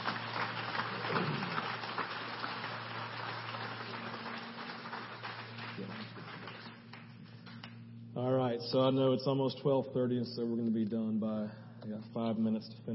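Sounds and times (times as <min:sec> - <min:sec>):
crowd clapping: 0:00.0 - 0:07.8
speech: 0:08.6 - 0:12.9.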